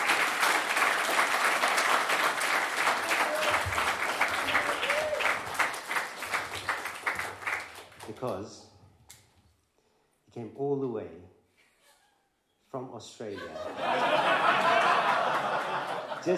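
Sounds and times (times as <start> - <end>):
audience applause at a Hare Krishna gathering: 0.0 - 8.2, 13.8 - 16.2
speech: 8.2 - 8.7, 10.4 - 11.4, 12.7 - 16.3
laughter: 13.3 - 16.3.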